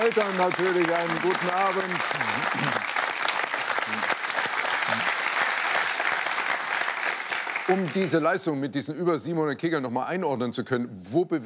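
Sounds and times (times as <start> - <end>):
audience applause: 0.0 - 8.3
speech: 0.1 - 3.0, 3.9 - 4.2, 7.7 - 11.4.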